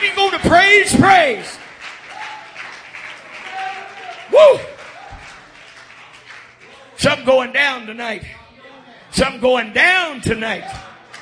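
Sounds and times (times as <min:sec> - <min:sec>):
audience clapping: 0:00.0 - 0:07.0, 0:10.9 - 0:11.2
speech: 0:07.0 - 0:08.4, 0:09.2 - 0:10.9.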